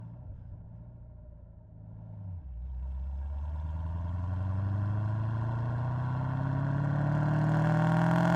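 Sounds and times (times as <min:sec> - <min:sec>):
2014 Camaro ZL1 center exhaust on drive ramps: 0:01.7 - 0:08.3.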